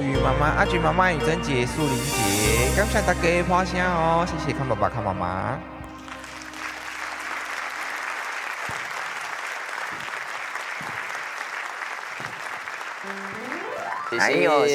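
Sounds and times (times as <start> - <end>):
speech: 0.2 - 5.8, 14.1 - 14.7
audience applause: 6.0 - 14.7.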